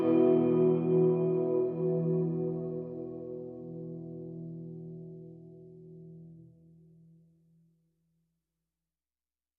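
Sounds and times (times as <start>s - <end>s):
guitar in E minor: 0.0s - 7.6s.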